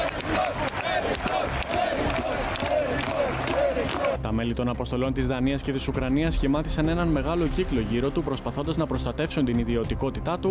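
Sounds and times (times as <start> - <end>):
large stadium crowd chanting a name: 0.0 - 4.2
speech: 4.3 - 10.5.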